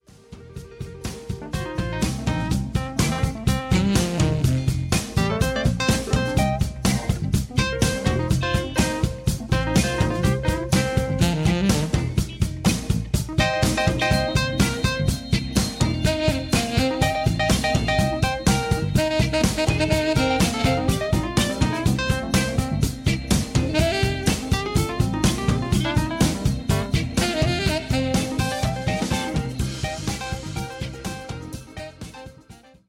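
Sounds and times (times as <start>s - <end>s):
instrumental music: 0.0s - 32.8s.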